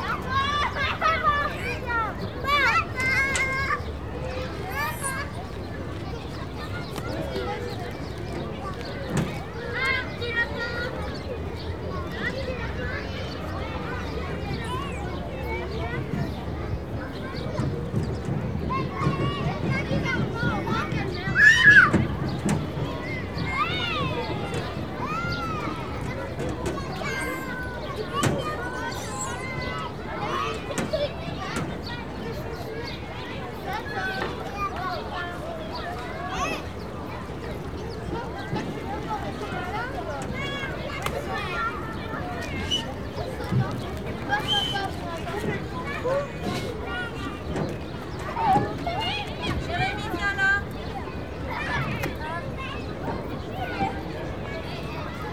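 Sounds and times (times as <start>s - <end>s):
playground noise: 0.0s - 55.3s.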